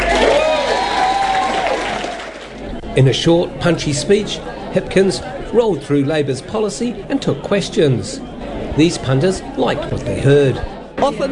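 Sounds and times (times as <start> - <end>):
standing ovation at a Labour Party event in New Plymouth: 0.0 - 2.8
crowd noise with voices: 0.0 - 11.3
speech: 3.0 - 11.3.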